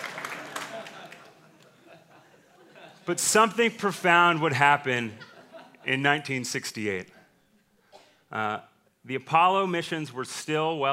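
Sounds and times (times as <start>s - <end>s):
audience applause: 0.0s - 1.4s
laughter: 0.2s - 6.3s
speech: 3.1s - 7.2s, 8.3s - 10.9s.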